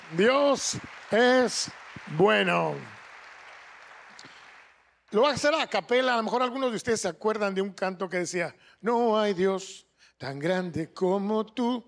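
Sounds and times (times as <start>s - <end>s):
audience applause: 0.0s - 5.6s
speech: 0.1s - 3.0s, 5.1s - 11.8s.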